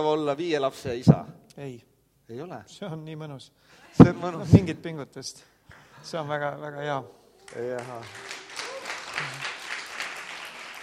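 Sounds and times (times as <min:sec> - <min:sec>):
speech: 0:00.0 - 0:08.3
applause: 0:07.4 - 0:10.8.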